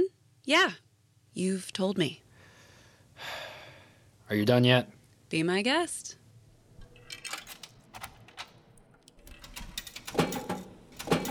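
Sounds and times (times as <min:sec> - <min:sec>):
speech: 0:00.5 - 0:00.8, 0:01.4 - 0:02.2, 0:03.2 - 0:03.4, 0:04.3 - 0:06.2
vending machine dropping two cans of Coke: 0:06.8 - 0:11.2.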